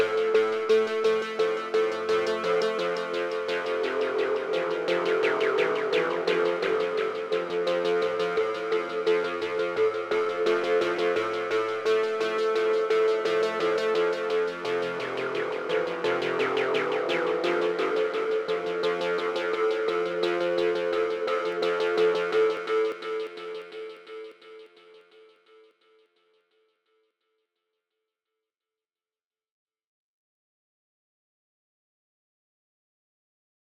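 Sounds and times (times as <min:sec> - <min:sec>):
synthesizer with dirty ping-pong delay: 0:00.0 - 0:24.7.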